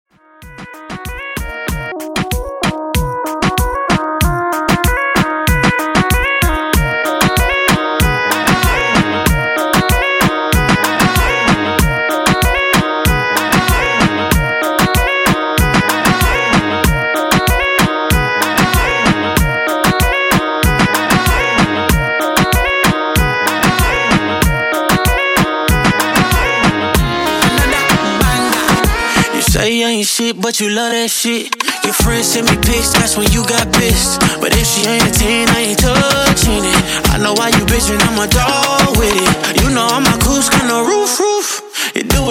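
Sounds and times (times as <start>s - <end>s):
RB dancehall beat: 0.2s - 42.3s.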